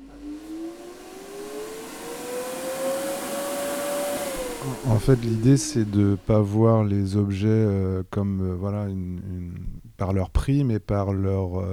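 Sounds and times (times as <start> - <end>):
electric air blower for inflatable bouncy castle: 0.0 - 6.6
speech: 4.6 - 11.7.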